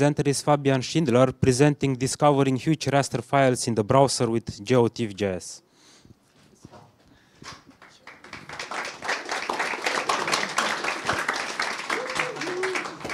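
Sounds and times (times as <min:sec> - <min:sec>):
speech: 0:00.0 - 0:05.6
audience clapping: 0:07.7 - 0:13.1.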